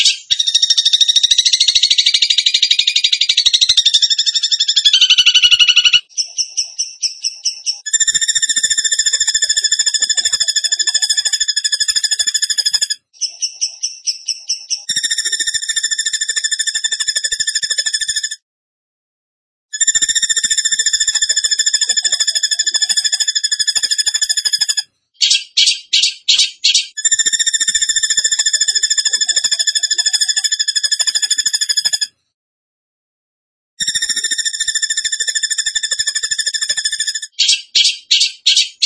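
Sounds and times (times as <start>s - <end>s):
bird trill song: 0.0s - 18.3s, 19.8s - 32.1s, 33.8s - 38.8s.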